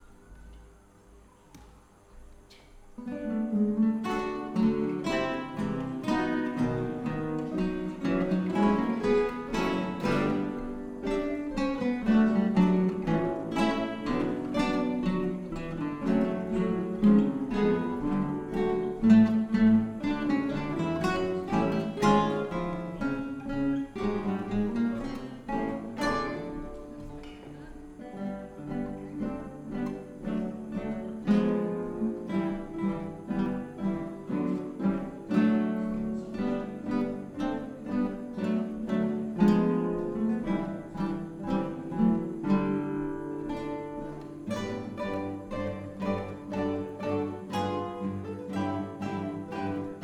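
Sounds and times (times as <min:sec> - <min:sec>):
gavotte played on guitar: 0:00.0 - 0:50.0.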